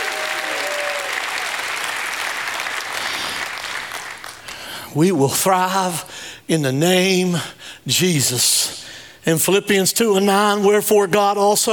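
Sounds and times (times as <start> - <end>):
audience shouting praise: 0.0 - 2.3
audience clapping: 0.0 - 4.8
speech: 4.9 - 11.7.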